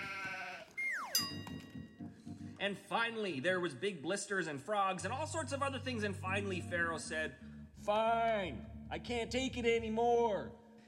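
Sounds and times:
livestock bleating: 0.0 - 0.8
speech: 2.6 - 10.6.

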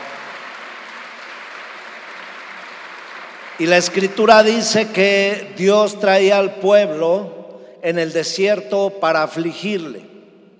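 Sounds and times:
audience applause: 0.0 - 4.1
speech: 3.6 - 10.1.

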